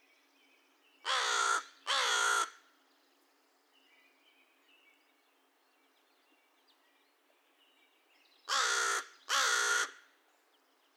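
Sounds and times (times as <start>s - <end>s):
American crow uttering raspy caws: 1.1s - 2.6s, 8.5s - 10.0s.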